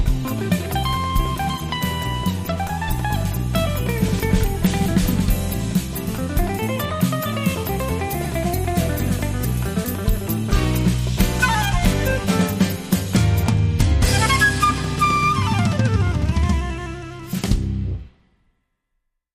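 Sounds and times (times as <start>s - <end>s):
guitar: 0.0s - 18.2s
flute: 11.3s - 13.0s, 14.0s - 17.7s.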